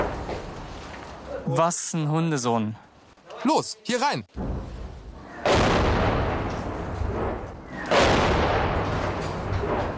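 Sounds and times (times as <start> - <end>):
speech: 1.5 - 4.7
tank gun firing: 5.5 - 9.9.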